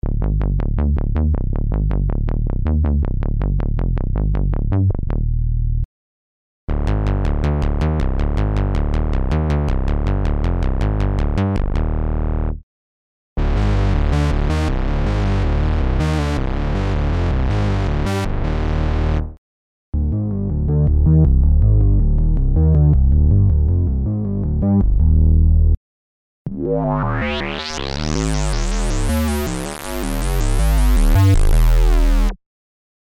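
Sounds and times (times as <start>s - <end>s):
hip hop bass: 0.0s - 5.8s, 6.7s - 12.6s, 13.4s - 19.4s, 20.0s - 25.8s, 26.5s - 32.4s.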